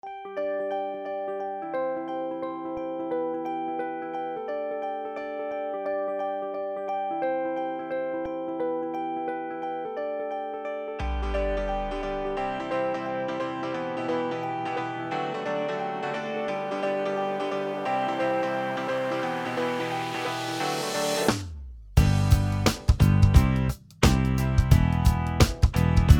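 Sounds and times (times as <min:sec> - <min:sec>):
instrumental music: 0:00.0 - 0:26.1.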